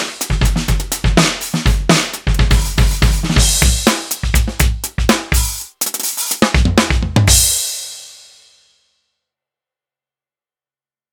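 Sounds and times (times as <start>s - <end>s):
tonal drums: 0.0s - 7.8s.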